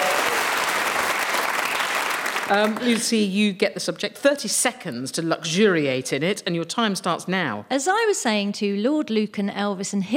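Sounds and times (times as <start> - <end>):
studio audience applauding a contestant on a comedy panel game: 0.0 - 3.1
speech: 2.5 - 10.1.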